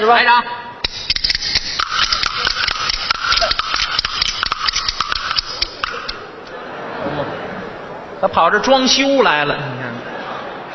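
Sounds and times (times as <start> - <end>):
speech: 0.1 - 0.6, 8.2 - 10.1
bamboo clapper boards played out of sync: 0.8 - 6.5
laughter: 5.5 - 8.6, 9.6 - 10.7.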